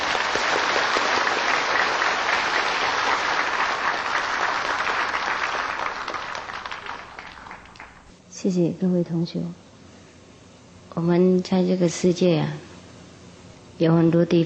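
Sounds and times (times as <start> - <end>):
warm audience applause: 0.0 - 8.1
speech: 8.4 - 9.6, 11.0 - 12.7, 13.8 - 14.4.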